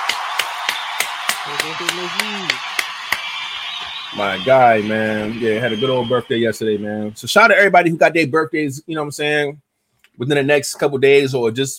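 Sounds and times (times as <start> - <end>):
round of applause hand claps: 0.0 - 4.6
short voiced cheer: 0.0 - 7.9
speech: 1.5 - 2.8, 4.1 - 11.7.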